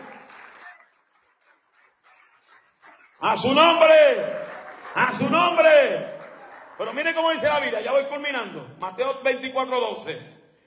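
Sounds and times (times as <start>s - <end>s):
audience applauding: 0.0s - 8.2s
speech: 3.2s - 6.1s, 6.8s - 10.4s.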